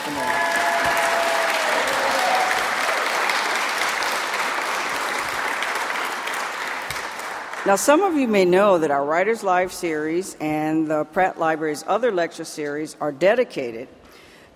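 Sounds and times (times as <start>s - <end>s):
audience applause: 0.0s - 7.7s
speech: 7.6s - 14.0s.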